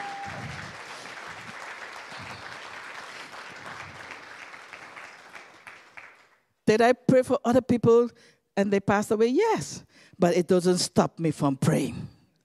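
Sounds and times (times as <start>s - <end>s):
audience clapping hands: 0.0s - 6.5s
speech: 6.7s - 12.1s.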